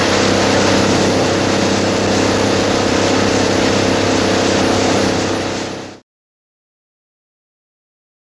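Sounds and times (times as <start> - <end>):
power boat bow wash: 0.0 - 6.0.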